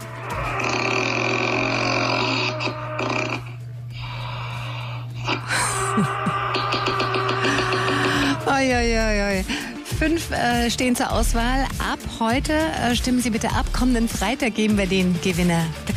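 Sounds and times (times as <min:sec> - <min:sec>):
man snoring: 0:00.0 - 0:08.5
speech: 0:09.0 - 0:15.9.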